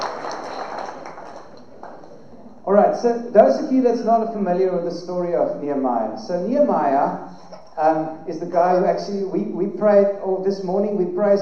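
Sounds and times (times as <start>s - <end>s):
audience hand clapping: 0.0s - 2.2s
speech: 2.7s - 11.4s.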